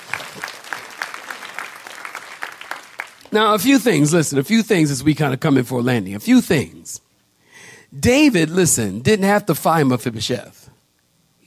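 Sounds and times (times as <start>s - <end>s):
audience clapping hands: 0.0s - 3.8s
speech: 3.3s - 7.0s, 7.9s - 10.7s.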